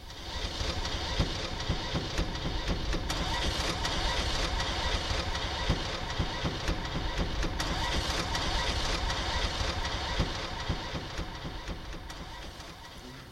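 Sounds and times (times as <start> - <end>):
Citroën 2CV car engine starting and running: 0.0 - 13.2.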